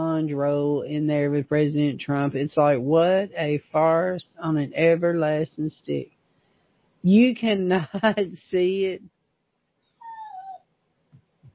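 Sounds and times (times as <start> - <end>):
speech: 0.2 - 6.2, 7.0 - 9.1
dog whimpering for attention: 10.0 - 10.6.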